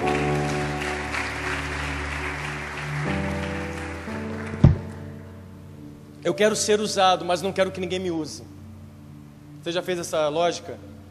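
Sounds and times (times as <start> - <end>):
crowd applauding: 0.0 - 5.1
sustained keyboard chords: 0.0 - 11.1
thump: 4.6 - 4.9
speech: 6.2 - 8.6, 9.6 - 10.9.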